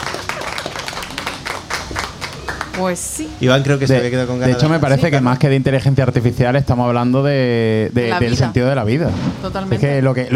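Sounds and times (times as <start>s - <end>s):
audience applause during a discussion on artificial intelligence: 0.0s - 3.6s
speech: 2.8s - 10.3s.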